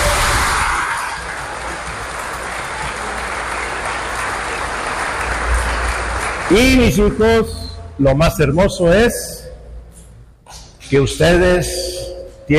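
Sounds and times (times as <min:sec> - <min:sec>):
audience applause: 0:00.0 - 0:07.1
speech: 0:06.5 - 0:09.4, 0:10.9 - 0:11.9.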